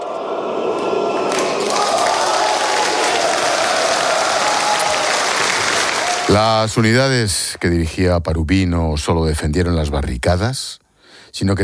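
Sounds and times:
people shouting: 0.0 - 5.3
parliament members applauding: 0.0 - 8.0
speech: 6.3 - 11.6.

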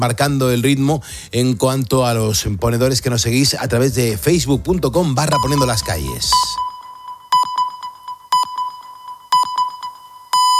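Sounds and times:
speech: 0.0 - 6.7
hourly time-signal pips on a Spanish radio station: 5.2 - 10.5.

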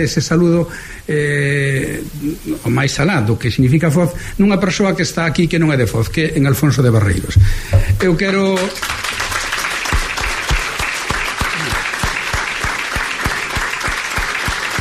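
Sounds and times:
speech: 0.0 - 9.1
audience applause: 8.5 - 14.7.

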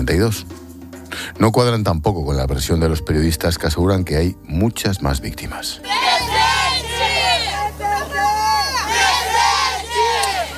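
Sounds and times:
speech: 0.0 - 0.6, 1.2 - 6.0
street protest crowd shouting: 5.8 - 10.5.

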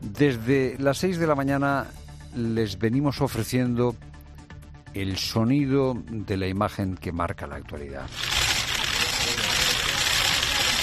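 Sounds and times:
speech: 0.2 - 4.1, 5.0 - 8.4
burst of camera flashes: 8.1 - 10.8.

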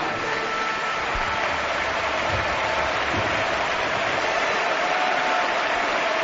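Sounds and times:
Camp Nou stadium crowd applauding and roaring as Neymar leaves the pitch: 0.0 - 6.2.

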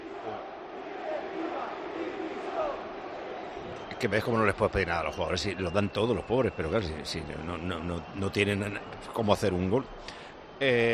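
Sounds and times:
stadium crowd chanting for board resignation: 0.0 - 4.0
speech: 4.0 - 10.9.

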